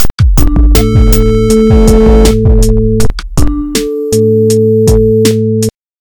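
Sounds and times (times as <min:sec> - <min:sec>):
game menu music: 0:00.4 - 0:05.3.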